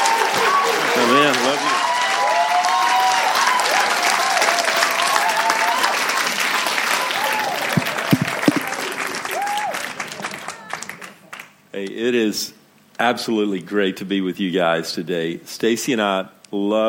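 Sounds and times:
church congregation applauding: 0.0s - 11.6s
speech: 1.0s - 1.7s, 12.1s - 16.8s.

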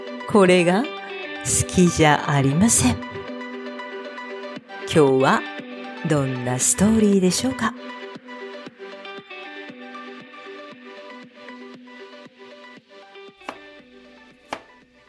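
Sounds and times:
speech: 0.3s - 3.1s, 4.9s - 8.0s
knife chopping on a board in a home kitchen: 13.4s - 13.7s, 14.4s - 14.8s.

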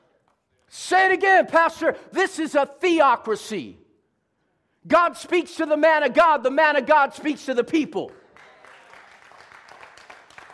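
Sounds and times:
speech: 0.8s - 3.8s, 4.8s - 8.2s
audience clapping: 7.9s - 10.5s.

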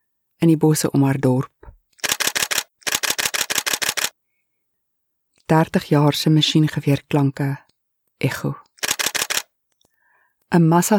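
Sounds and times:
speech: 0.4s - 1.6s, 5.5s - 7.6s, 8.2s - 8.6s, 10.5s - 10.9s
rapid camera shutter clicks: 2.0s - 4.1s, 8.8s - 9.5s.

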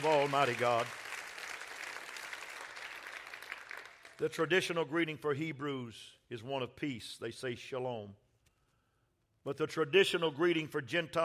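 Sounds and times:
speech: 0.0s - 1.0s, 4.2s - 8.2s, 9.4s - 11.2s
audience clapping hands: 0.0s - 4.4s.

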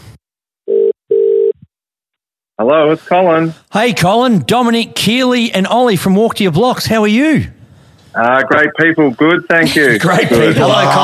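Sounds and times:
telephone call ringing with two mid-pitched buzzing tones: 0.7s - 1.6s
speech: 2.6s - 7.6s, 8.2s - 11.0s
laughter: 9.5s - 11.0s.

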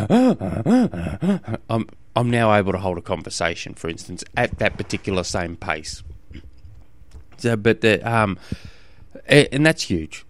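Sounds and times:
voice imitating gasping for air running uphill: 0.0s - 1.7s
speech: 0.0s - 6.4s, 7.4s - 10.2s.

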